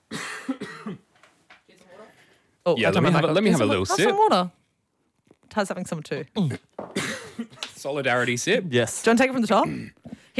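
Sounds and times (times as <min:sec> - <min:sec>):
coughing and throat clearing: 0:00.0 - 0:01.1, 0:06.4 - 0:07.7
speech: 0:00.5 - 0:01.0, 0:02.6 - 0:04.6, 0:05.5 - 0:06.7, 0:07.4 - 0:10.3.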